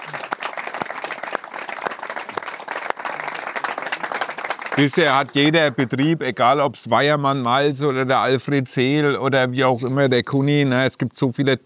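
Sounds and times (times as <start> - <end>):
audience applause for a family behind a farming business in Bamberg: 0.0 - 6.0
speech: 4.8 - 11.6.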